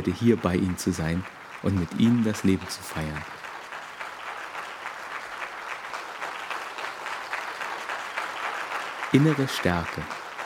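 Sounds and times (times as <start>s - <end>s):
speech: 0.0s - 3.4s, 9.1s - 10.2s
audience applause: 0.0s - 10.4s.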